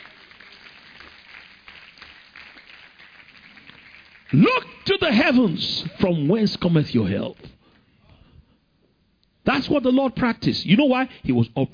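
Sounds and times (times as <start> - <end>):
audience clapping: 0.0 - 5.5
speech: 4.3 - 7.6, 9.6 - 11.7.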